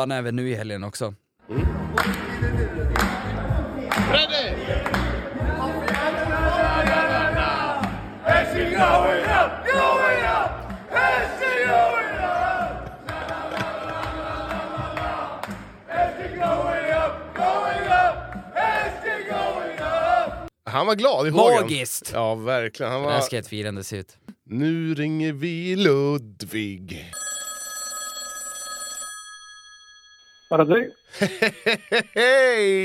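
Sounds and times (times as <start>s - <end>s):
speech: 0.0s - 2.9s, 4.1s - 5.1s, 20.7s - 27.2s, 30.5s - 32.8s
crowd cheering in celebration: 1.6s - 20.5s
laughter: 31.1s - 32.8s.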